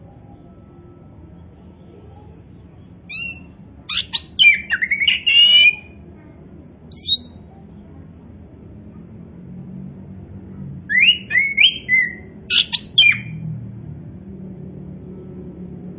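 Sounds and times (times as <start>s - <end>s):
Oriental magpie-robin singing: 2.4s - 6.0s, 6.9s - 7.4s, 10.9s - 13.4s.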